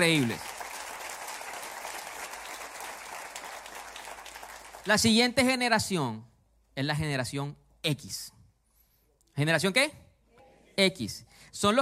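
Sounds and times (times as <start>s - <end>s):
speech: 0.0s - 0.5s, 4.8s - 8.4s, 9.4s - 10.0s, 10.8s - 11.8s
audience applause: 0.0s - 5.0s.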